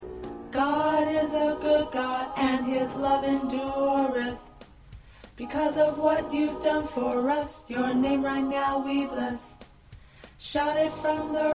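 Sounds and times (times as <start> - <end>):
tenor singing: 0.5 - 4.6, 5.4 - 9.6.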